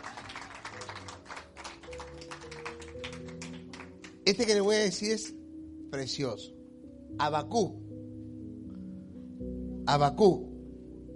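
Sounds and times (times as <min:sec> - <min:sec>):
audience applauding: 0:00.0 - 0:04.2
speech: 0:04.3 - 0:06.6, 0:07.2 - 0:07.8, 0:09.9 - 0:10.5.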